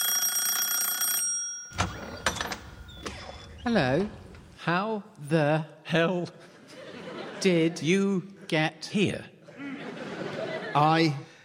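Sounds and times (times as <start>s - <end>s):
doorbell ringing: 0.0s - 2.9s
speech: 3.6s - 6.5s, 7.4s - 9.3s, 10.8s - 11.3s
laughter: 6.3s - 11.2s.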